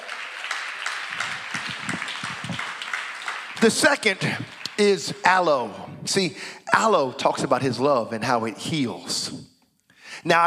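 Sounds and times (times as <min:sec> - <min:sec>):
audience clapping hands: 0:00.0 - 0:05.8
speech: 0:03.6 - 0:09.5, 0:10.2 - 0:10.4.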